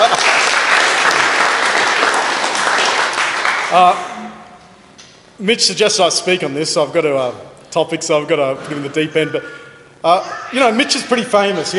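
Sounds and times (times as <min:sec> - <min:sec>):
audience applause: 0:00.0 - 0:04.0
speech: 0:03.7 - 0:04.1, 0:05.4 - 0:11.7.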